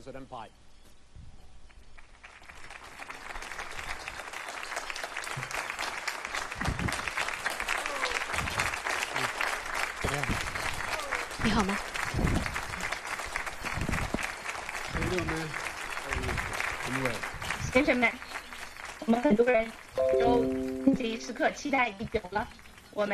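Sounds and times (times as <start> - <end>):
speech: 0.0 - 0.7, 11.6 - 12.2, 17.8 - 18.3, 19.1 - 23.1
audience applause at US presidential debate as Donald Trump and Joe Biden enter: 2.0 - 23.1.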